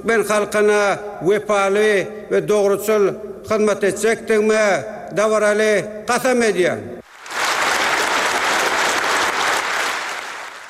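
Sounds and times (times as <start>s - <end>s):
speech: 0.0s - 6.9s
applause from government members and parliament deputies after presidential oath: 7.1s - 10.6s.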